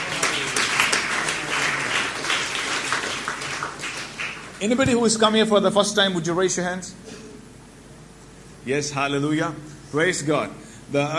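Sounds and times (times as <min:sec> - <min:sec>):
church congregation applauding to welcome first-time visitors: 0:00.0 - 0:04.8
speech: 0:04.6 - 0:07.0, 0:08.7 - 0:11.1.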